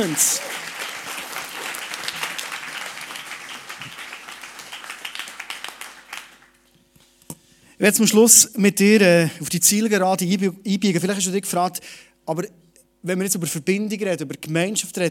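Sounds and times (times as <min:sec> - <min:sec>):
speech: 0:00.0 - 0:00.6, 0:07.8 - 0:15.1
audience applause: 0:00.0 - 0:06.6.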